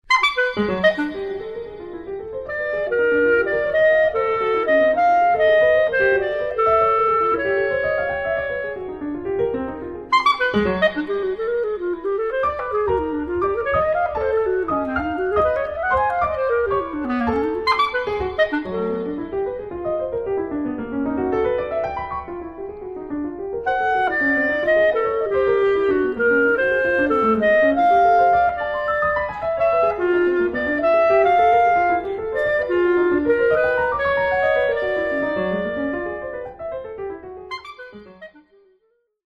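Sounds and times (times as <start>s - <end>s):
C clarinet playing: 0.0s - 38.8s.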